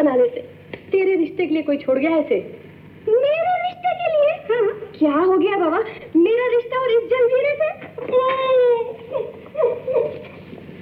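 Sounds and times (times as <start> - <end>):
speech: 0.0 - 10.8
woman crying: 8.0 - 10.8.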